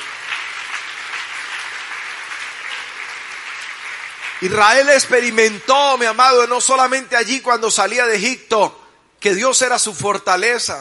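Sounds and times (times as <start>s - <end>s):
audience applause: 0.0s - 5.6s
speech: 4.4s - 10.8s.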